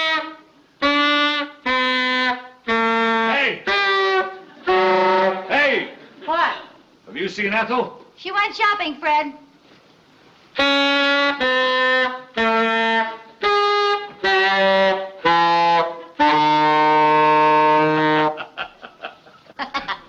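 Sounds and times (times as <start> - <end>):
saxophone being practiced: 0.0 - 5.8, 10.5 - 18.5
speech: 7.3 - 9.4, 10.6 - 11.6
laughter: 18.3 - 20.0.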